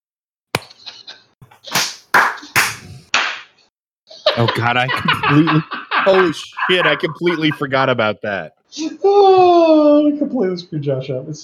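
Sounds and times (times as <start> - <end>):
single hand clap as edit marker: 0.6 - 0.8, 1.4 - 3.5
laughter: 4.1 - 8.4
speech: 4.4 - 11.4.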